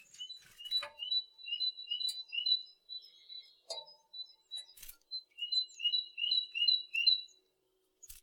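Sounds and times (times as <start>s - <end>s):
bird chirping: 0.0s - 8.2s.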